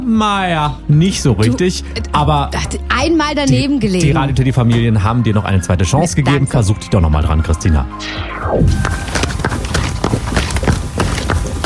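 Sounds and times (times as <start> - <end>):
speech: 0.1 - 9.3
hoofbeats of a horse at a relaxed walk gait: 8.6 - 11.6.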